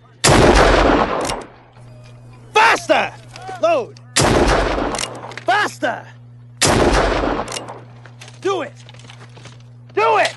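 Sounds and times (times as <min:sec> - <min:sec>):
loud gunshot fired from a gun behind a man's head in a TV drama: 0:00.2 - 0:01.5, 0:04.2 - 0:05.0, 0:06.6 - 0:07.8
speech: 0:02.8 - 0:04.0, 0:05.6 - 0:06.2, 0:07.2 - 0:07.8, 0:08.4 - 0:08.9.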